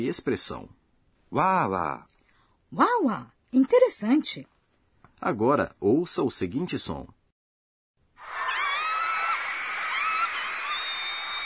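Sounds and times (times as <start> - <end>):
speech: 0.0 - 4.5, 5.2 - 7.2
crowd of girls screaming shrilly: 8.2 - 11.4.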